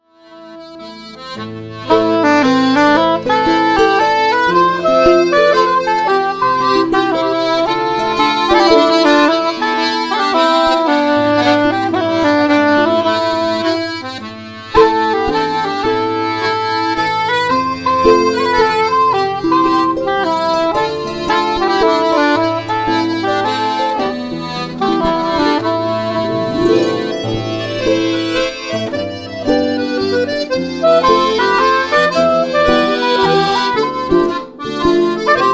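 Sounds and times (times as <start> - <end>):
slow mazurka: 0.0 - 35.5.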